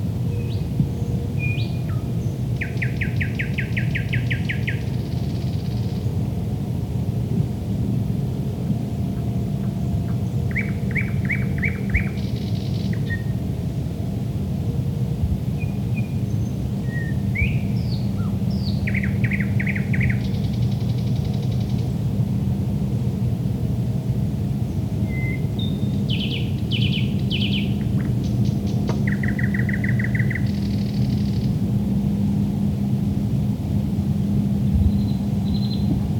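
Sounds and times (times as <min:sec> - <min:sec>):
low engine-like hum: 0:00.0 - 0:36.1
thrush nightingale song: 0:01.4 - 0:05.8, 0:10.5 - 0:13.3, 0:16.9 - 0:21.7, 0:25.0 - 0:31.5, 0:34.9 - 0:36.1.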